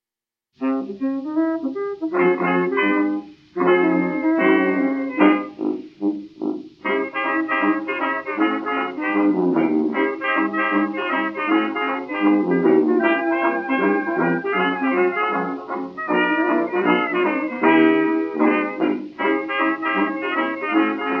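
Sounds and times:
blues music: 0.6 - 21.1.

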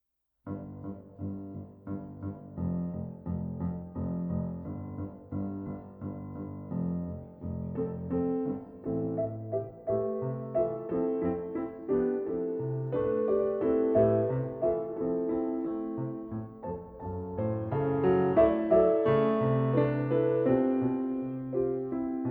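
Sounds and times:
piano: 0.0 - 22.3.

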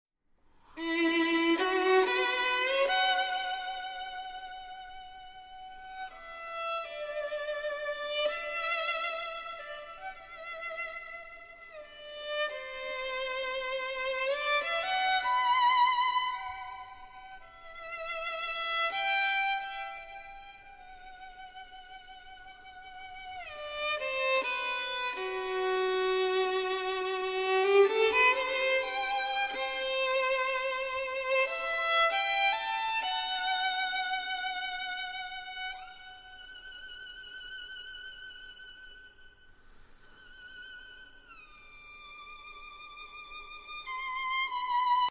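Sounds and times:
violin and chamber orchestra: 0.7 - 45.0.

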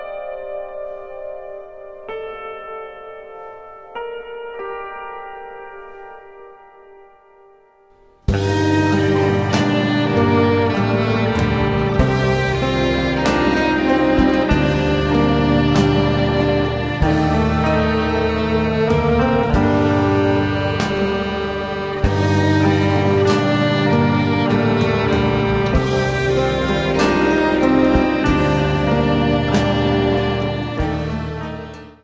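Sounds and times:
folk music: 8.3 - 32.0.

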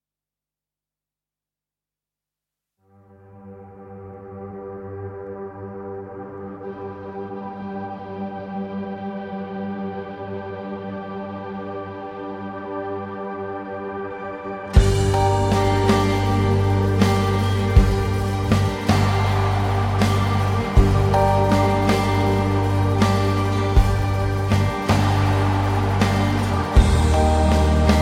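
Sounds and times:
instrumental music: 14.7 - 28.0.

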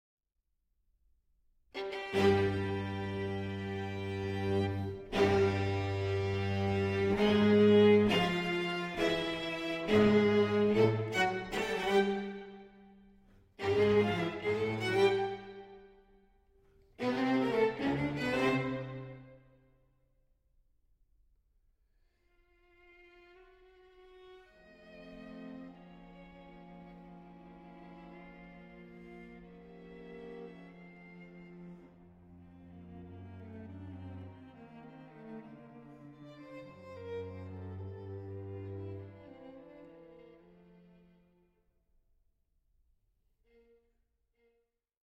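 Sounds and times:
fugue in B-flat major: 1.8 - 13.0, 13.6 - 15.9, 17.0 - 19.4, 22.8 - 41.4.

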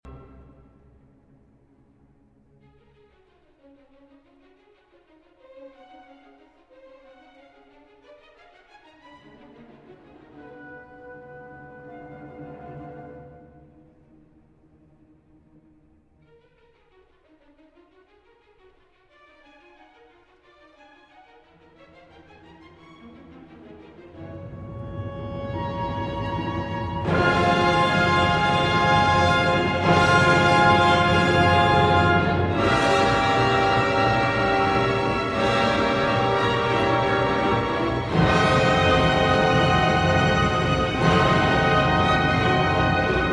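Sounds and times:
orchestra playing symphony movement: 0.0 - 1.4, 5.7 - 16.5, 19.3 - 43.3.

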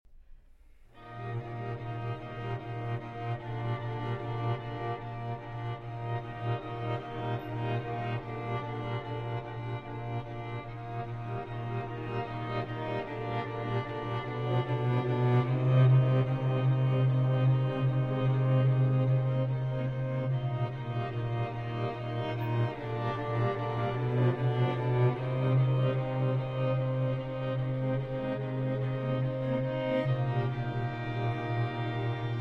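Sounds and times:
string quartet: 0.9 - 32.4.

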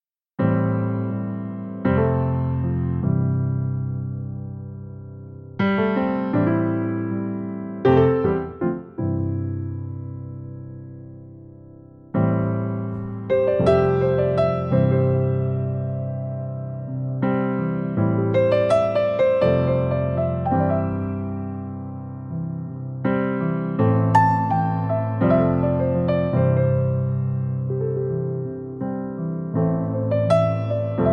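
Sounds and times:
piano music: 0.4 - 31.1.

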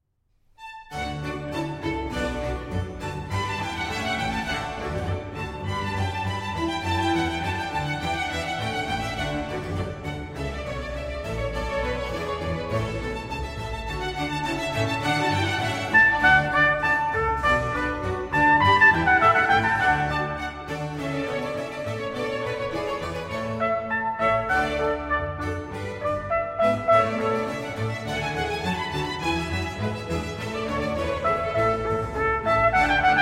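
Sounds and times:
trumpet concerto music: 0.9 - 33.2.

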